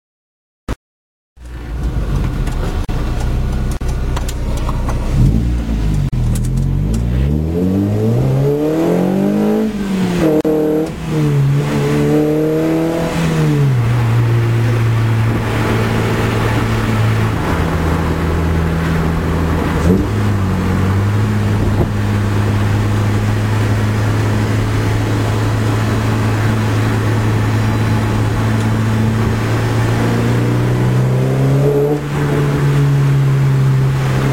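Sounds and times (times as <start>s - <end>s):
RS Extreme car with motobuild silenced catalytic converter exhaust: 1.4s - 34.3s.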